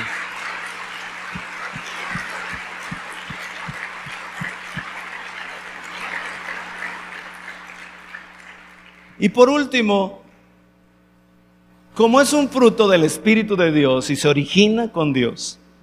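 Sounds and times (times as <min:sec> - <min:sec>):
audience applauding: 0:00.0 - 0:09.2
speech: 0:09.2 - 0:10.2, 0:12.0 - 0:15.6.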